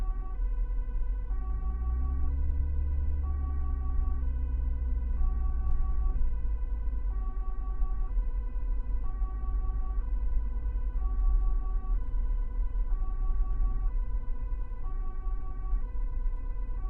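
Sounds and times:
Volvo V70 engine starting: 0.0 - 16.8
siren: 0.0 - 16.8.

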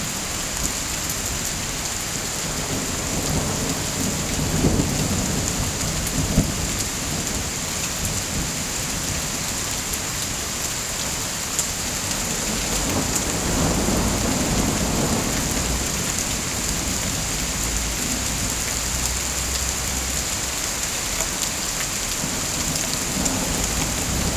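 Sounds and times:
rain: 0.0 - 24.3
thunder: 2.5 - 7.4, 12.4 - 18.4.

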